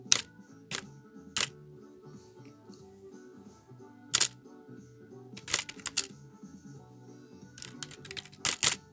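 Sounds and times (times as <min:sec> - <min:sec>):
office sound effects: 0:00.1 - 0:01.5, 0:04.2 - 0:04.3, 0:05.4 - 0:06.1, 0:07.6 - 0:08.8.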